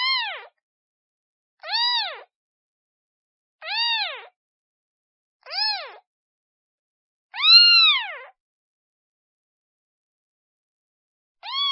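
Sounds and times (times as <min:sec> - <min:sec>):
kitten meowing: 0:00.0 - 0:00.5, 0:01.6 - 0:02.3, 0:03.6 - 0:04.4, 0:05.5 - 0:06.0, 0:07.4 - 0:08.3, 0:11.4 - 0:11.6.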